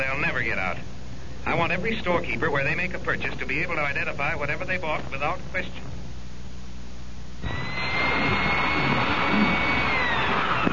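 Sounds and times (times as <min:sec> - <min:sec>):
speech: 0:00.3 - 0:05.9
electric drill running: 0:07.4 - 0:10.7.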